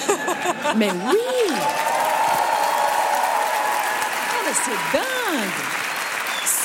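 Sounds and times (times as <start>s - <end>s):
laughter: 0.0s - 1.7s
large live crowd applauding and cheering: 0.0s - 6.6s
speech: 0.7s - 2.0s, 4.5s - 5.9s.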